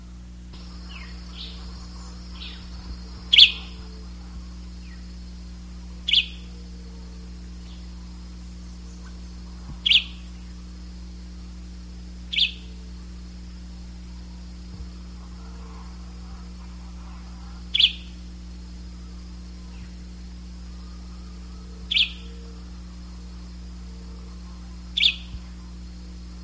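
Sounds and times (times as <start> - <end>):
electrical hum: 0.0 - 26.4
bird chirps: 0.6 - 10.8, 12.3 - 12.8, 15.2 - 18.2, 20.8 - 22.6, 25.0 - 25.7.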